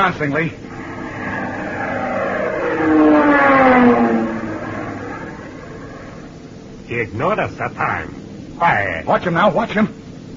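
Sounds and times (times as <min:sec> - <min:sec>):
speech: 0:00.0 - 0:00.6, 0:02.8 - 0:04.2, 0:06.9 - 0:10.0
plane diving: 0:00.6 - 0:06.9.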